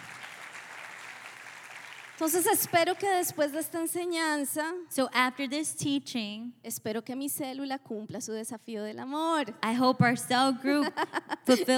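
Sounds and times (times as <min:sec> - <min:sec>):
audience applause to God: 0:00.0 - 0:03.1
speech: 0:02.2 - 0:11.7
laughter: 0:10.7 - 0:11.7.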